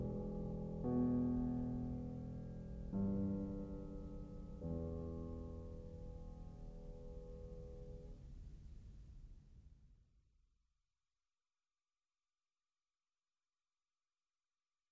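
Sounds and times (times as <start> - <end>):
piano prelude in E minor: 0.0 - 8.3.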